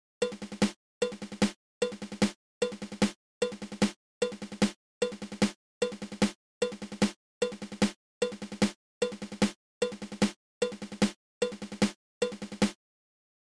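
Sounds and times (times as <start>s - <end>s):
drum five stroke roll: 0.2s - 12.8s.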